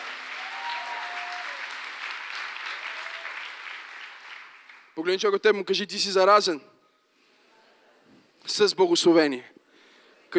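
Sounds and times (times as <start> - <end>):
audience applauding: 0.0 - 5.0
speech: 5.0 - 6.7, 8.6 - 9.6.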